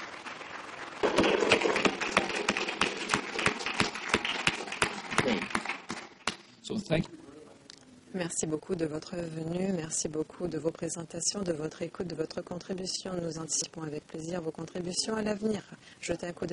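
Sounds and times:
audience applause: 0.0s - 6.4s
speech: 6.7s - 7.2s, 8.1s - 16.5s.

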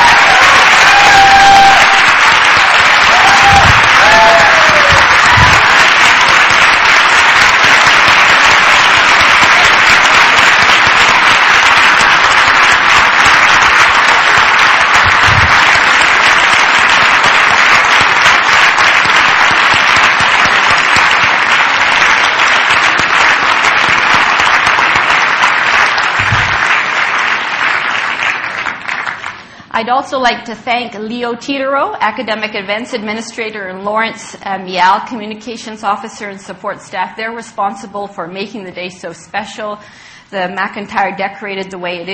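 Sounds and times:
audience applause: 0.0s - 29.6s
speech: 29.8s - 42.1s.

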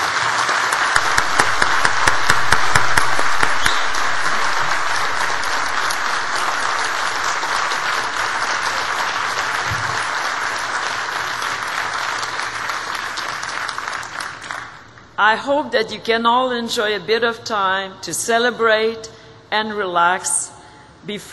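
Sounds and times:
audience applause: 0.0s - 15.0s
speech: 15.3s - 21.3s.

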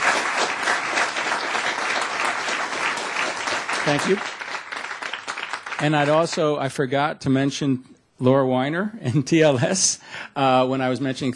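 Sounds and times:
audience clapping for presenters at an event: 0.0s - 6.7s
speech: 3.9s - 4.4s, 5.8s - 11.3s.

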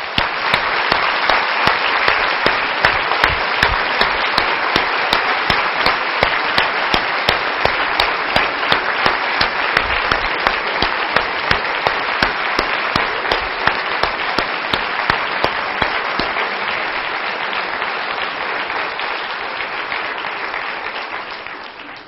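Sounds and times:
audience applause: 0.0s - 22.0s.

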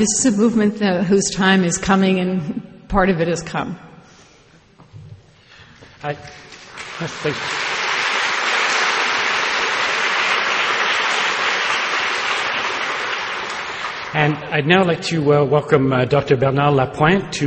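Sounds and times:
speech: 0.0s - 3.9s, 6.0s - 6.4s, 7.0s - 7.6s, 14.1s - 17.4s
audience applause after a lecture: 6.2s - 14.5s.

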